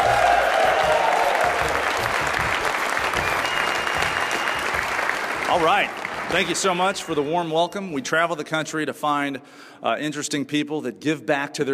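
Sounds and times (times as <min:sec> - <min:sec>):
live studio audience applauding on the University of Louisville campus: 0:00.0 - 0:07.7
speech: 0:05.6 - 0:11.7.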